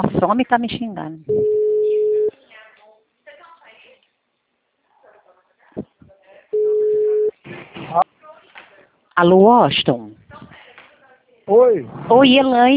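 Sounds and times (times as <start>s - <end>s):
speech: 0.0s - 1.6s, 9.2s - 10.5s, 11.5s - 12.7s
outgoing telephone call ringback tones: 1.3s - 2.3s, 6.6s - 7.3s.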